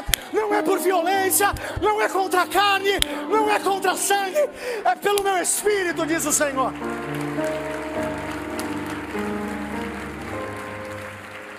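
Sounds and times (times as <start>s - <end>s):
sustained keyboard chords: 0.0s - 11.5s
speech: 0.6s - 8.1s
crowd clapping: 5.1s - 11.5s.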